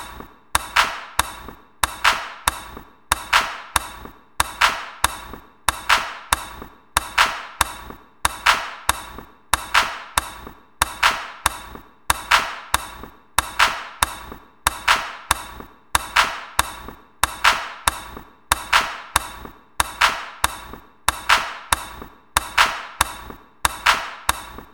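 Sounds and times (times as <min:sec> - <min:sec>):
handclap: 0:00.0 - 0:24.7.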